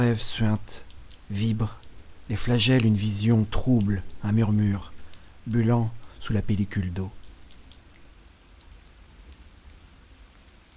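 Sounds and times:
speech: 0:00.0 - 0:07.2
rain falling: 0:00.0 - 0:10.7.

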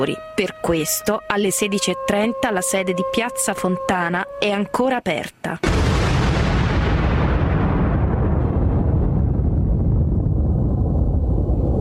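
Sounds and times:
speech: 0:00.0 - 0:05.9
bomb explosion at Piazza Fontana in Milan in the afternoon: 0:05.6 - 0:11.7.

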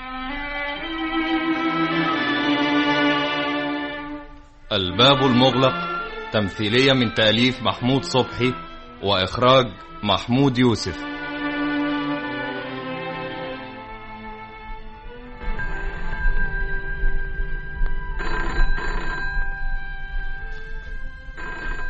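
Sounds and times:
sustained music: 0:00.0 - 0:21.8
speech: 0:04.7 - 0:11.1
telephone bell ringing in a doctor's home: 0:15.4 - 0:21.8.

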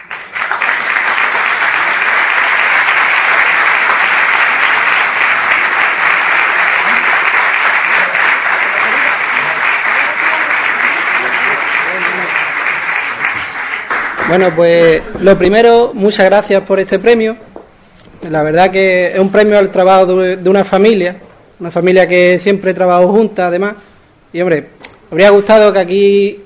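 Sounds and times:
audience applause: 0:00.0 - 0:15.0
speech: 0:14.3 - 0:17.4, 0:18.2 - 0:26.4.

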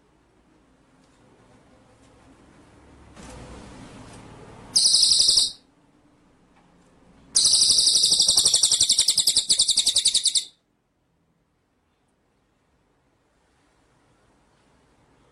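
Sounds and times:
White-rumped shama trilling: 0:04.8 - 0:05.6, 0:07.4 - 0:10.6.

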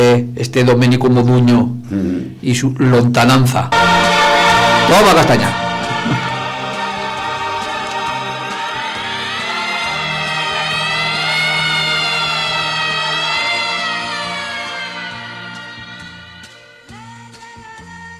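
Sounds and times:
speech: 0:00.1 - 0:03.8, 0:04.9 - 0:06.3
distant siren: 0:03.8 - 0:16.5.

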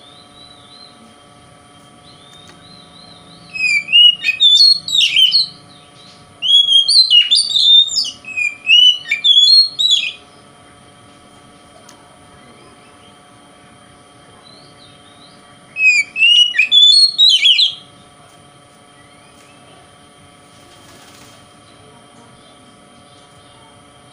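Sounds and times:
Oriental magpie-robin song: 0:00.0 - 0:10.5, 0:14.4 - 0:18.0, 0:18.9 - 0:19.9, 0:21.6 - 0:24.1.

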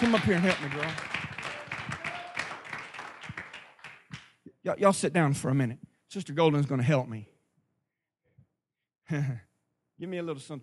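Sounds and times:
crowd clapping hands: 0:00.0 - 0:04.4
speech: 0:00.1 - 0:01.2, 0:04.6 - 0:07.3, 0:09.1 - 0:10.6.

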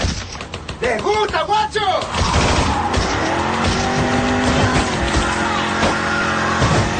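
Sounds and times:
road noise: 0:00.0 - 0:06.9
coupé engine roaring at high revs: 0:02.0 - 0:06.9
tires squealing: 0:02.0 - 0:06.9.

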